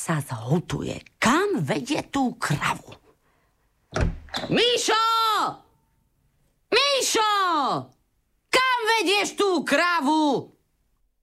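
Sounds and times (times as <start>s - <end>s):
speech: 0.0s - 3.0s, 3.9s - 5.6s, 7.0s - 8.0s, 8.9s - 10.6s
door being slammed: 3.9s - 4.7s.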